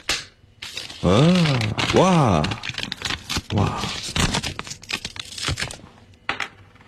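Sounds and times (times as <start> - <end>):
taped paper envelope torn open: 0.6 - 5.8
speech: 1.0 - 2.7, 3.5 - 4.1.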